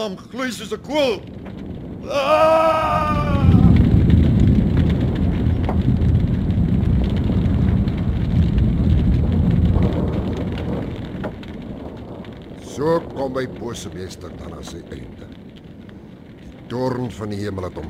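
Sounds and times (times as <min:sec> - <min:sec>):
speech: 0:00.0 - 0:03.6, 0:12.8 - 0:15.4, 0:16.7 - 0:17.8
roaring rumble with crackling hiss of earth opening in fiery eruption: 0:00.0 - 0:17.8
descending wail: 0:01.9 - 0:04.4.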